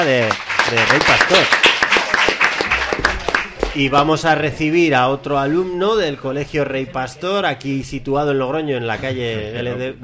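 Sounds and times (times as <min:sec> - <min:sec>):
speech: 0:00.0 - 0:01.7, 0:03.8 - 0:10.0
audience applause: 0:00.0 - 0:04.0.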